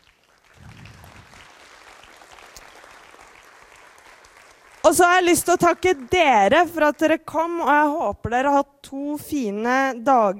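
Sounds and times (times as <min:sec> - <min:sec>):
warm applause from conference audience: 0:00.0 - 0:06.6
speech: 0:04.9 - 0:10.3.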